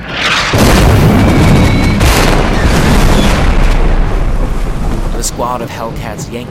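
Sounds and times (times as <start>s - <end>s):
anti-aircraft shell volley exploding: 0.0s - 6.4s
crackling sizzling debris: 0.0s - 6.4s
faint whistling streaks: 0.2s - 3.5s
speech: 5.4s - 6.4s.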